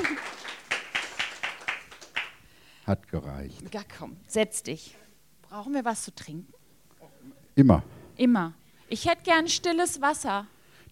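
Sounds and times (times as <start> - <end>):
studio audience clapping in unison to welcome a talk-show guest: 0.0 - 2.4
speech: 2.9 - 6.6, 7.2 - 10.8.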